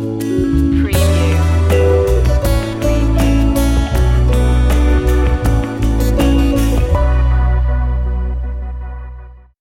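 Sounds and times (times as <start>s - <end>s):
relaxing music stinger: 0.2s - 9.4s.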